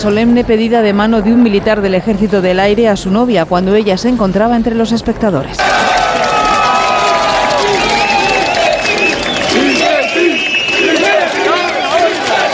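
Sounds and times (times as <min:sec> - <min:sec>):
speech: 0:00.0 - 0:05.9
soldiers applauding: 0:05.6 - 0:12.5
soldiers cheering: 0:05.6 - 0:12.5.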